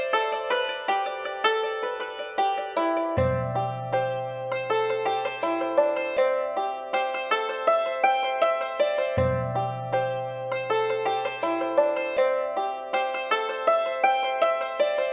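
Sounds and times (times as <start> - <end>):
Far East style music loop: 0.0 - 15.1.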